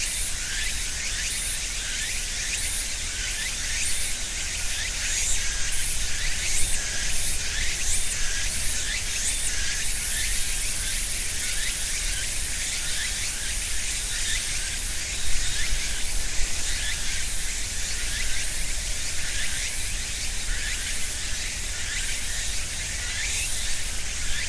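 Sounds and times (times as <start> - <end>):
cicadas and other insects buzzing: 0.0 - 24.4.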